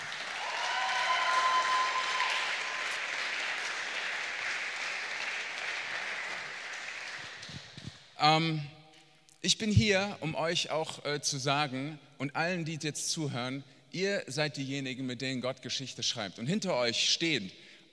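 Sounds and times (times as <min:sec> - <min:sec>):
cheers and whoops: 0:00.0 - 0:03.8
audience applause: 0:00.0 - 0:08.0
speech: 0:08.2 - 0:08.7, 0:09.4 - 0:17.9.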